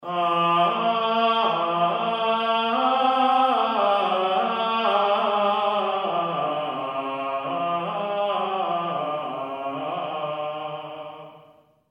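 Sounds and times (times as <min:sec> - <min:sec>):
Gregorian vocal chant: 0:00.0 - 0:11.8.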